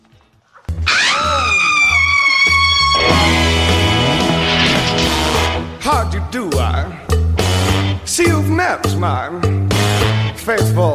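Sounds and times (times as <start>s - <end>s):
rock musical band playing song intro: 0.9s - 10.9s
loud sustained bright tones with a bending note in a rock musical song intro: 3.0s - 5.7s
speech: 6.2s - 7.0s, 8.1s - 10.9s.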